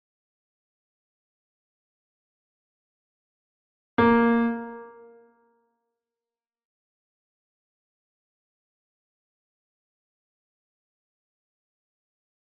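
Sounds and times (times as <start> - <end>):
4-note scales building heptatonics: 4.0 - 5.3.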